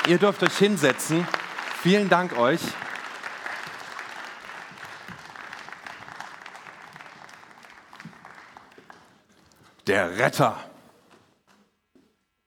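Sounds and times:
audience applause: 0.0 - 9.8
speech: 0.1 - 2.8, 9.9 - 10.7.

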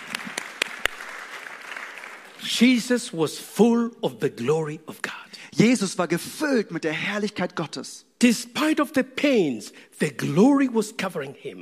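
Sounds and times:
audience applause: 0.0 - 2.4
speech: 2.4 - 11.6.

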